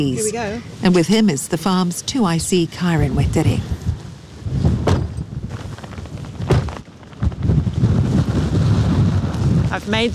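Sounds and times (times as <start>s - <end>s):
speech: 0.0s - 3.8s, 9.8s - 10.1s
heavy wind buffeting the microphone: 0.0s - 10.1s.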